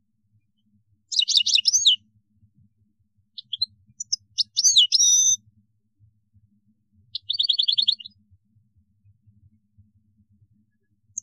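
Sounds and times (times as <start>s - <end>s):
European goldfinch song: 1.1s - 2.1s, 3.4s - 5.4s, 7.2s - 8.2s, 10.7s - 11.2s.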